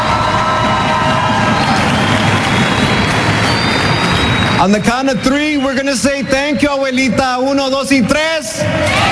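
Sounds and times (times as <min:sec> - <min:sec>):
audience applause: 0:00.0 - 0:05.6
audience cheering: 0:00.0 - 0:09.1
speech: 0:04.6 - 0:09.1.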